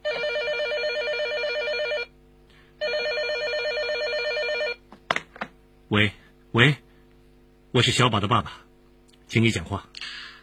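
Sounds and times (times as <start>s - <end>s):
telephone ringing: 0.0s - 2.1s, 2.8s - 4.8s
speech: 5.9s - 6.8s, 7.7s - 8.7s, 9.3s - 9.9s.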